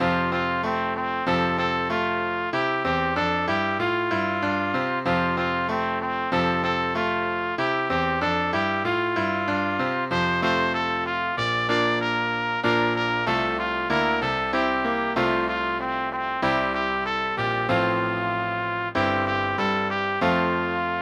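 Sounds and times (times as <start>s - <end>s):
piano: 0.0s - 21.0s
trumpet: 0.0s - 21.0s.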